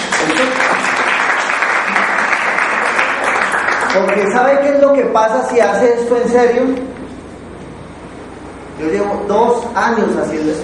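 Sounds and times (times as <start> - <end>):
crowd clapping: 0.0 - 4.8
speech: 3.9 - 6.9, 8.8 - 10.6.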